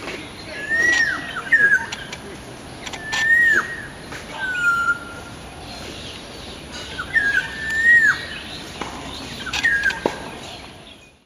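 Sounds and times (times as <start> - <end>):
orioles singing: 0.0 - 11.2.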